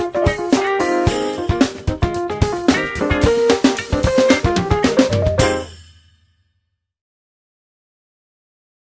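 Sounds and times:
improvised music: 0:00.0 - 0:05.8.

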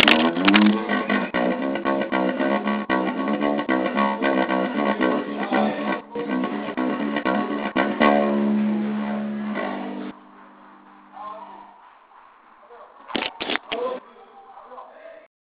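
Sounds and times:
bass playing: 0:00.0 - 0:11.8.

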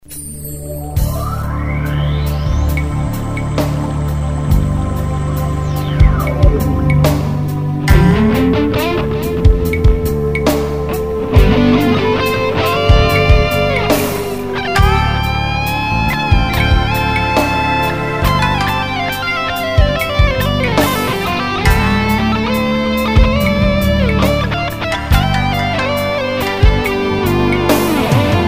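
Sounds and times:
guitar: 0:00.6 - 0:28.4.

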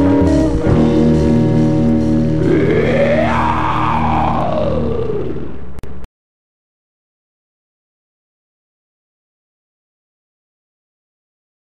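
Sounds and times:
guitar: 0:00.0 - 0:05.9.

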